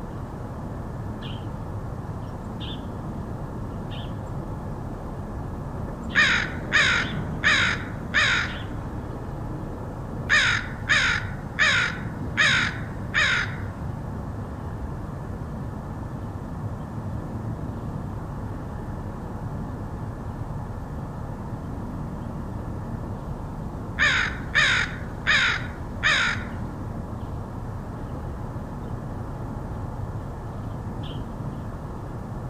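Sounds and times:
low background noise: 0.0s - 32.4s
crow cawing: 6.1s - 8.7s, 10.3s - 13.8s, 24.0s - 26.6s.

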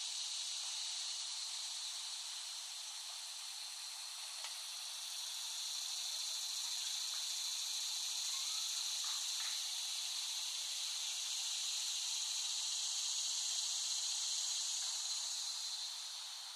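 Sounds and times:
cicada chorus: 0.0s - 16.5s.

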